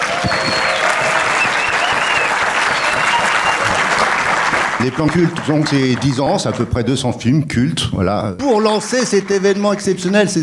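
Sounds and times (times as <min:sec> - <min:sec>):
whistles: 0:00.0 - 0:03.8
cinema audience applauding: 0:00.0 - 0:06.8, 0:08.4 - 0:10.4
speech: 0:04.8 - 0:10.4.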